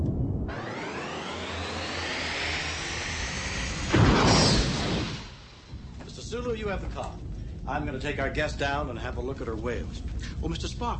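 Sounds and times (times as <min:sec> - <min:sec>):
deep mechanical roar of starship engines: 0:00.0 - 0:06.4
loud whooshing burst: 0:00.3 - 0:06.0
speech: 0:06.3 - 0:10.9.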